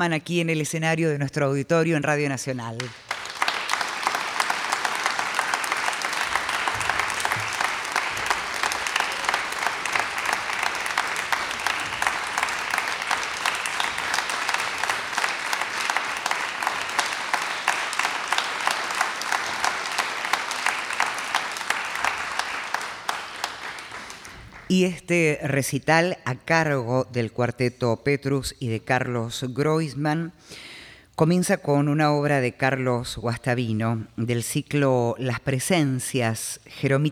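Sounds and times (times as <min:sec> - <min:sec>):
speech: 0:00.0 - 0:03.0, 0:25.1 - 0:37.1
audience applause: 0:02.8 - 0:24.7.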